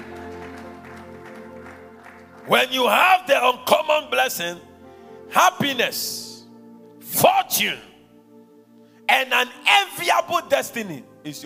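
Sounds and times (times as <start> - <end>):
congregation clapping: 0.0 - 3.0
speech: 2.5 - 4.7, 5.3 - 6.3, 7.1 - 7.9, 9.1 - 11.4.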